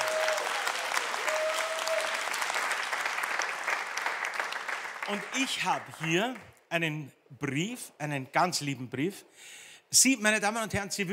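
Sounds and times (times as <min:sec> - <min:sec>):
audience applause: 0:00.0 - 0:06.4
speech: 0:05.1 - 0:11.1.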